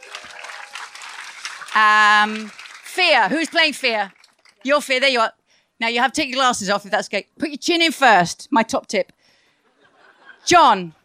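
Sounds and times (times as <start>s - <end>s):
audience applause at a live stage show: 0.0s - 4.6s
speech: 1.8s - 9.2s, 10.4s - 11.0s.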